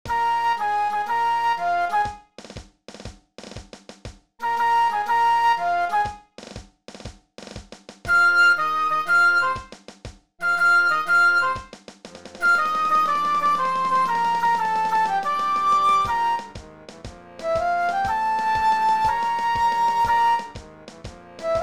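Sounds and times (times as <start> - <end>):
flute: 0.0 - 2.3, 4.4 - 6.3, 8.1 - 9.7, 10.4 - 11.7, 12.4 - 16.7, 17.3 - 21.6.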